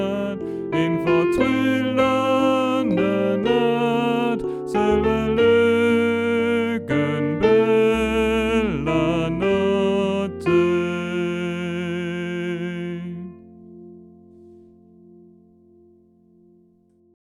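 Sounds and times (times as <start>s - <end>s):
soprano voice: 0.0s - 13.6s.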